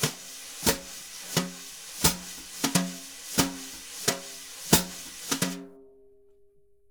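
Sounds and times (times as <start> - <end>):
jazz brush drumming: 0.0 - 5.6.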